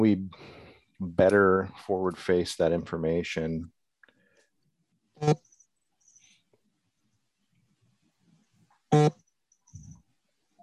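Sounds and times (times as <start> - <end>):
speech: 0.0 - 3.8, 5.2 - 5.5, 8.9 - 9.2
cell phone interference on a table: 5.2 - 5.4, 8.9 - 9.2.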